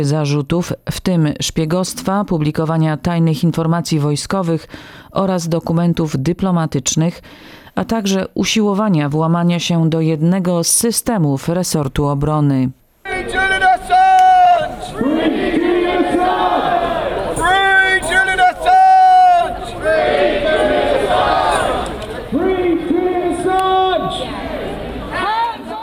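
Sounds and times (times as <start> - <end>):
speech: 0.0 - 13.7
crowd chanting slogans: 13.1 - 25.8.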